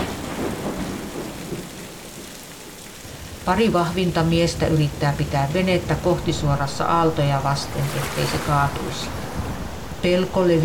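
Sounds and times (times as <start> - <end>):
rushing wind: 0.0 - 2.0, 3.0 - 10.6
rain in a thunderstorm: 0.0 - 10.6
thunder rumbling: 0.0 - 10.6
speech: 3.4 - 9.2, 10.0 - 10.6.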